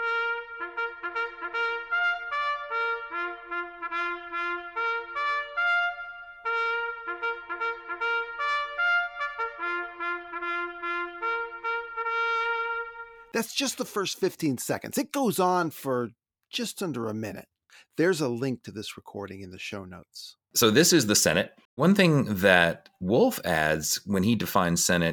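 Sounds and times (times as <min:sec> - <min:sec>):
solo trumpet sounding a night call: 0:00.0 - 0:13.4
speech: 0:13.4 - 0:25.1.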